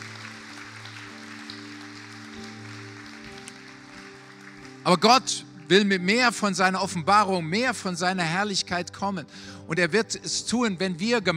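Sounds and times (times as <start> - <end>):
crowd applauding for worship team: 0.0 - 6.4
sustained low keyboard chords: 0.0 - 11.3
speech: 4.9 - 11.3.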